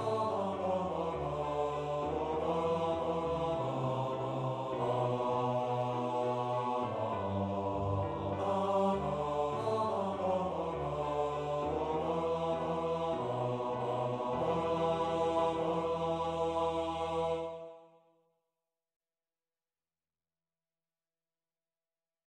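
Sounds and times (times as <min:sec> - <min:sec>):
national anthem played on bass: 0:00.0 - 0:17.6.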